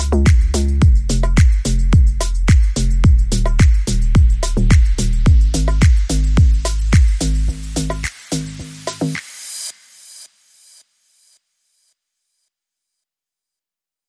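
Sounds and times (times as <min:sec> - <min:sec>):
bass: 0:00.0 - 0:09.2
drums: 0:00.0 - 0:10.2.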